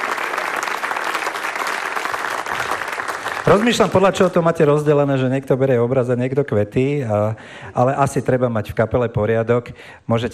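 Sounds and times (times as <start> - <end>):
audience applause: 0.0 - 4.1
speech: 3.5 - 10.3.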